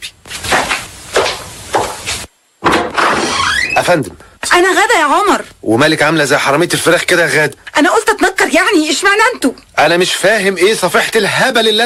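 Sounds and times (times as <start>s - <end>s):
door opening: 2.7s - 3.9s
speech: 3.9s - 11.8s.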